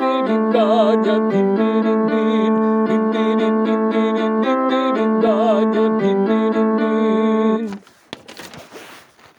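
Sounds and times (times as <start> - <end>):
tenor voices singing: 0.0 - 7.6.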